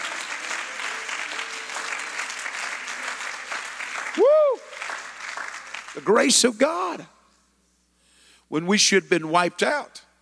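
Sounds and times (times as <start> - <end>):
audience applause: 0.0 - 6.2
speech: 6.0 - 7.2, 8.5 - 10.1.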